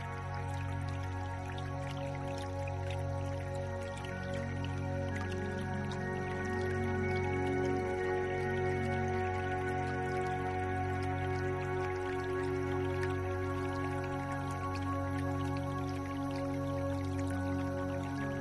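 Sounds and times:
light water drips and trickles: 0:00.0 - 0:18.3
relaxing music with sustained chords: 0:00.0 - 0:18.3.

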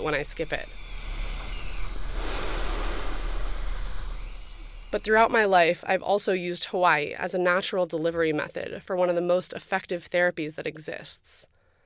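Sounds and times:
speech: 0:00.0 - 0:00.8, 0:04.9 - 0:11.5
nebulizer hissing: 0:00.0 - 0:05.6.

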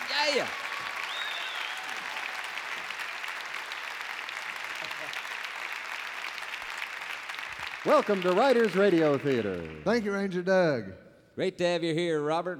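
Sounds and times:
audience applause welcoming a country performer from Bandera, Texas on stage: 0:00.0 - 0:10.2
speech: 0:00.3 - 0:00.6, 0:07.8 - 0:12.5.

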